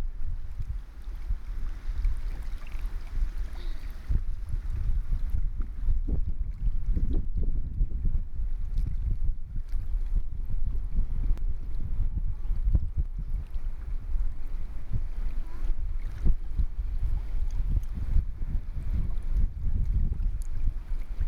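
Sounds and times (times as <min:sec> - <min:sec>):
water: 0:00.0 - 0:21.2
wind: 0:00.0 - 0:21.2.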